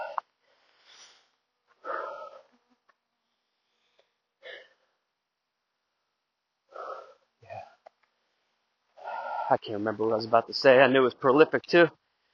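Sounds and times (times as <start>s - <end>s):
man breathing heavily after climbing a hill: 0.0s - 2.6s, 3.2s - 5.0s, 6.7s - 9.6s
speech: 9.5s - 12.3s.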